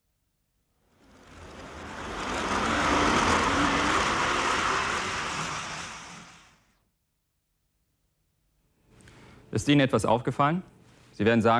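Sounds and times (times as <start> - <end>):
model railway train accelerating and running: 0.9 - 6.7
speech: 9.5 - 11.5.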